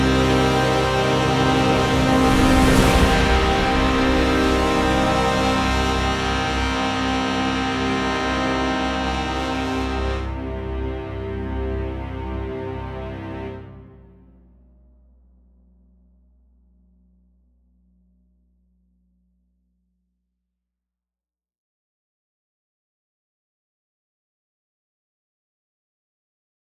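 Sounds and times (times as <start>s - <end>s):
epic orchestral brass: 0.0s - 14.5s.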